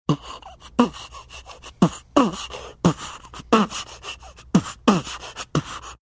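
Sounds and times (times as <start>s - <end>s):
beatboxing: 0.1s - 5.9s.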